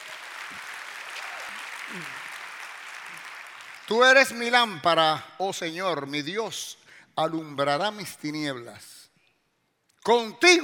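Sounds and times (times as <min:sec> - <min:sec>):
audience applauding: 0:00.0 - 0:04.1
speech: 0:01.9 - 0:02.2, 0:03.9 - 0:09.0, 0:10.1 - 0:10.6.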